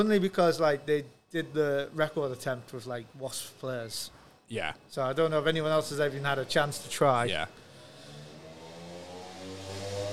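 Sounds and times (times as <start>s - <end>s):
speech: 0.0s - 7.6s
motorbike passing by: 7.6s - 10.1s.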